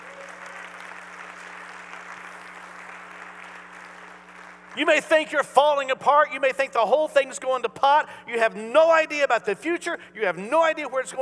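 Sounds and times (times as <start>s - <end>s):
audience clapping in praise: 0.0s - 5.2s
speech: 4.8s - 11.2s.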